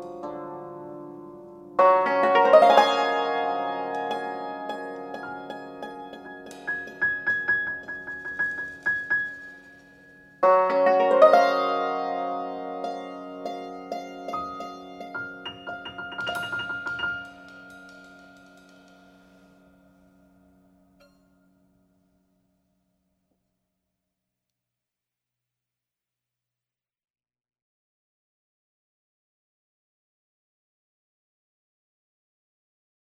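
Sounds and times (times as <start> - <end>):
free improvisation music: 0.0 - 21.6.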